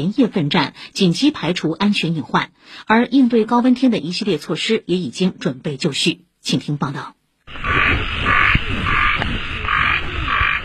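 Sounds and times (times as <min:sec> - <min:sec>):
speech: 0:00.0 - 0:08.1
frogs croaking in grass at night: 0:07.5 - 0:10.6
cicadas buzzing: 0:07.6 - 0:10.6
insects chirping: 0:07.6 - 0:10.6.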